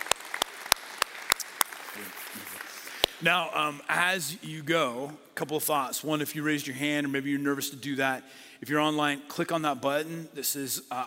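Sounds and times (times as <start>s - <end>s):
audience clapping: 0.0s - 3.8s
speech: 3.2s - 11.0s.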